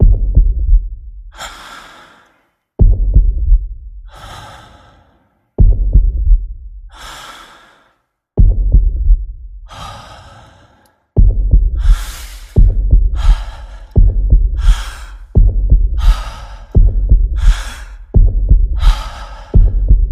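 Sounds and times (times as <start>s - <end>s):
athlete heartbeat: 0.0s - 1.1s, 2.8s - 3.8s, 5.6s - 6.6s, 8.4s - 9.4s, 11.2s - 20.1s
athlete breathing: 1.3s - 2.6s, 4.1s - 5.6s, 6.9s - 8.2s, 9.7s - 20.1s.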